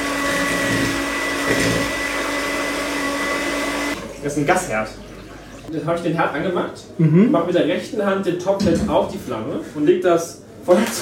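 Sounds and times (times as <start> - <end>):
mixer motor whirring stirring cream egg and sugar mixture: 0.0 - 4.3
speech: 4.2 - 5.1, 5.7 - 10.9.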